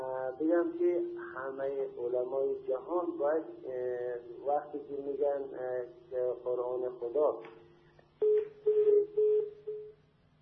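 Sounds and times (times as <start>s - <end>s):
speech: 0.4s - 7.6s
telephone line tone after a dropped call: 8.2s - 10.0s.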